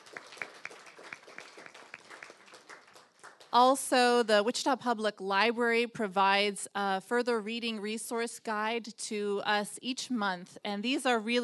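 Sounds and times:
audience applause: 0:00.0 - 0:03.6
speech: 0:03.6 - 0:11.4.

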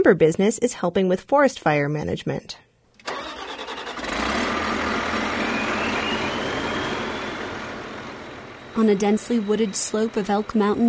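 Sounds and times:
speech: 0:00.0 - 0:03.2, 0:08.8 - 0:10.8
heavy logging machine's diesel engine roaring: 0:02.9 - 0:10.8
thin high whine: 0:04.9 - 0:10.8.

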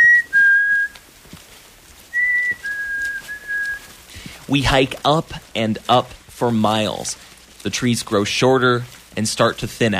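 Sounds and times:
person whistling imitating birdsong to call birds: 0:00.0 - 0:01.0, 0:02.2 - 0:03.9
speech: 0:04.5 - 0:09.9.

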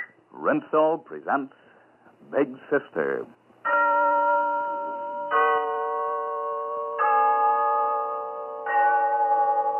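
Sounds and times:
speech: 0:00.5 - 0:01.6, 0:02.3 - 0:03.8
Glen Falls Town Hall clock bell chiming: 0:03.7 - 0:09.7.

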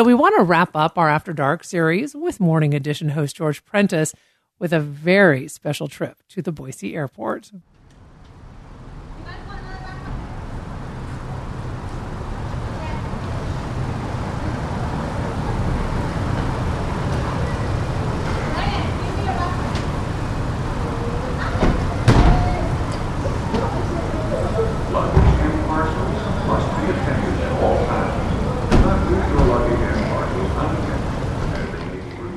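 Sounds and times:
speech: 0:00.0 - 0:07.7
curbside traffic at Boise Airport on a cold night: 0:07.8 - 0:32.3.

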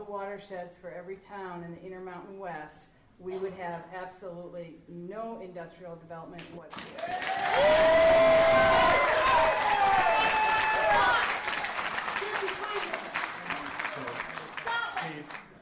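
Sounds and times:
speech: 0:00.1 - 0:08.9
crowd applauding at a meeting: 0:06.7 - 0:15.5
crowd whooping and shouting: 0:07.0 - 0:13.0.

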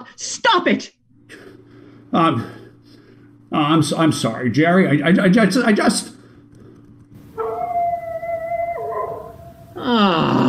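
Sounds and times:
speech: 0:00.1 - 0:01.0, 0:02.1 - 0:02.6, 0:03.5 - 0:06.2
dog howling: 0:07.4 - 0:10.4.

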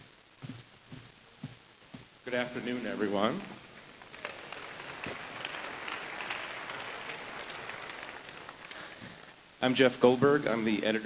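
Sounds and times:
speech: 0:02.3 - 0:03.6, 0:09.6 - 0:11.0
audience applause: 0:02.4 - 0:09.4.

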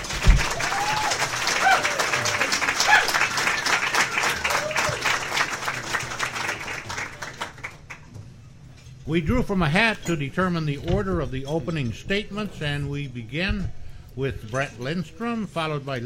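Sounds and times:
studio audience cheering and hooting: 0:00.0 - 0:05.4
studio audience applause for debate candidates: 0:00.0 - 0:08.1
speech: 0:09.1 - 0:16.0.

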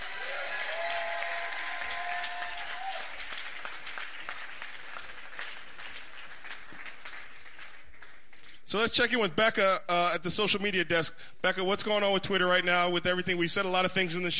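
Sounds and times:
audience applause welcoming a panel: 0:00.0 - 0:08.3
speech: 0:08.7 - 0:14.3.

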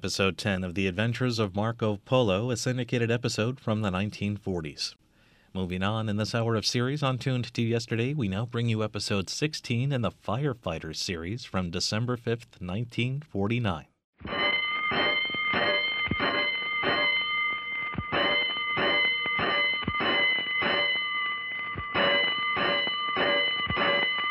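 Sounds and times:
speech: 0:00.0 - 0:14.4
fire alarm bells sounding a five-alarm call in a 1949 radio drama: 0:14.2 - 0:24.3.

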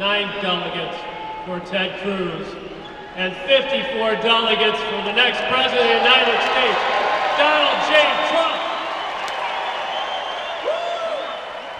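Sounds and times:
speech: 0:00.0 - 0:08.5
convention crowd cheering and applauding: 0:05.6 - 0:11.7.

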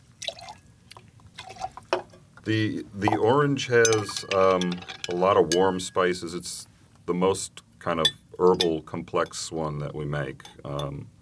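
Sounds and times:
soda water poured into a gin and tonic: 0:00.0 - 0:02.2
speech: 0:02.4 - 0:11.2.

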